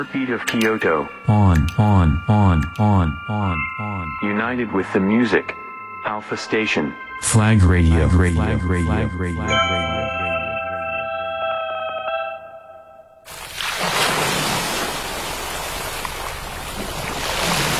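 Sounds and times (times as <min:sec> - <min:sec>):
speech: 0:00.0 - 0:10.2
melodic jingle: 0:00.7 - 0:13.3
ocean waves crashing: 0:13.3 - 0:17.7.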